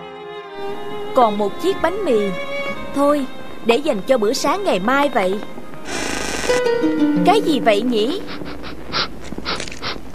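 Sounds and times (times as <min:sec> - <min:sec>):
speech: 0:00.6 - 0:05.5, 0:06.5 - 0:08.4
puppy panting: 0:08.1 - 0:10.1.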